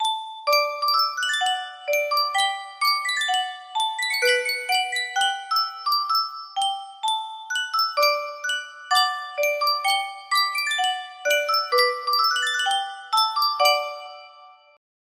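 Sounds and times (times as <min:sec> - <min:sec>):
Sankyo music box: 0:00.0 - 0:14.8.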